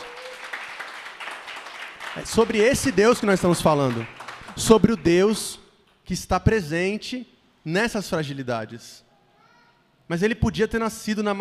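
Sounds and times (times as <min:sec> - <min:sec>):
audience applause: 0:00.0 - 0:05.1
speech: 0:02.2 - 0:09.0, 0:10.1 - 0:11.3.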